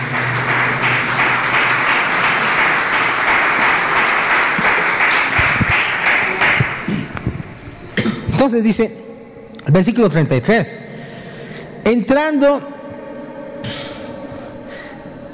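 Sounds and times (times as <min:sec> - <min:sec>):
loud applause from audience: 0:00.0 - 0:07.2
speech: 0:08.4 - 0:09.0, 0:09.6 - 0:10.9, 0:11.9 - 0:12.7.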